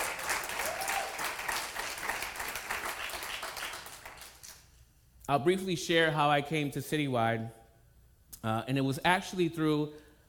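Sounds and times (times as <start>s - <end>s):
crowd applause: 0.0s - 4.4s
speech: 5.3s - 7.6s, 8.4s - 10.0s.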